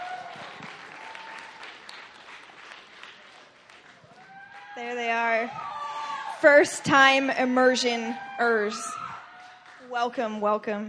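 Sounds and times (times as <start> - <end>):
audience clapping to welcome students onto a stage: 0.0 - 5.9, 9.3 - 10.2
speech: 4.8 - 5.8, 6.4 - 9.0, 9.9 - 10.8.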